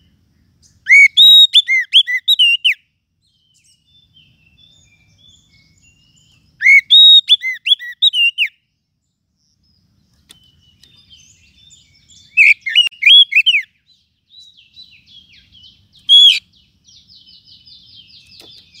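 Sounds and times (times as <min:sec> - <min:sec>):
lovebird calls: 0:00.0 - 0:08.6, 0:09.4 - 0:18.7.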